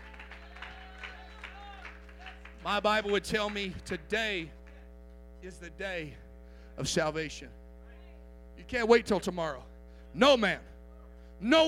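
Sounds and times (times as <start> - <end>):
audience clapping hands: 0.0 - 4.9
speech: 2.6 - 4.6, 5.4 - 6.2, 6.8 - 7.6, 8.6 - 10.7, 11.4 - 11.6.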